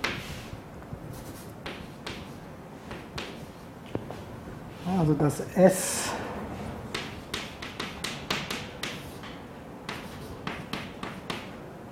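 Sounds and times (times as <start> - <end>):
chalk tapping on a board: 0.0 - 0.4, 1.2 - 3.6, 6.9 - 11.6
writing on a board: 0.0 - 3.7, 7.0 - 11.5
speech: 4.9 - 6.2.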